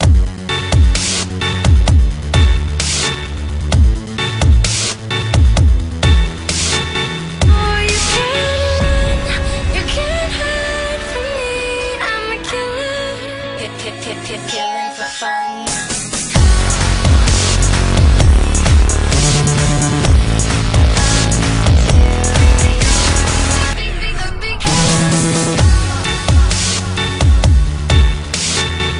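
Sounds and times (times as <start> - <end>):
dubstep music: 0.0 - 28.9.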